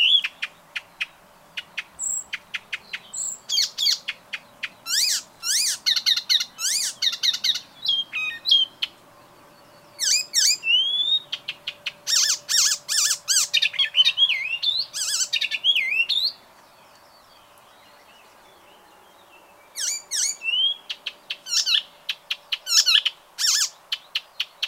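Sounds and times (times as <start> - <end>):
bird calls chirps and whistles: 0.0 - 9.0, 9.6 - 18.4, 19.6 - 24.6.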